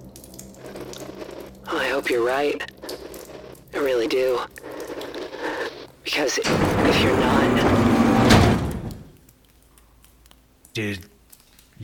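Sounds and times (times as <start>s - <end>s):
speech: 2.0s - 3.0s, 3.8s - 4.6s, 6.1s - 7.9s, 10.8s - 11.1s
pressure door sliding open: 6.4s - 9.2s.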